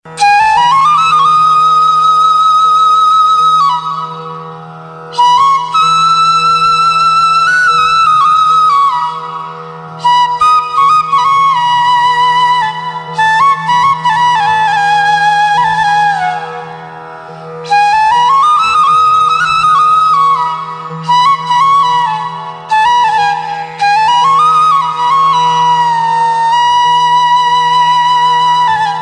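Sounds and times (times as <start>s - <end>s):
flute music: 0.0s - 29.0s.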